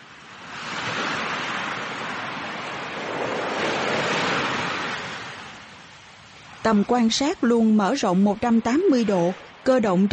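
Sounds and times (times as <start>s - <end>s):
surf rolling onto a sandy shore: 0.0s - 10.1s
speech: 6.6s - 10.1s.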